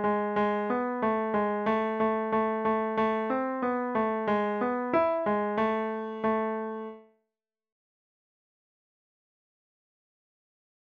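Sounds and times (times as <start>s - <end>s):
piano: 0.0s - 7.2s.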